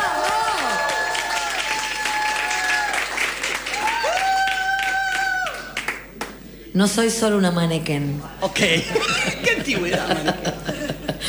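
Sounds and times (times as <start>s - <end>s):
audience applause: 0.0s - 6.4s
speech: 6.8s - 10.7s
laughter: 8.4s - 11.2s.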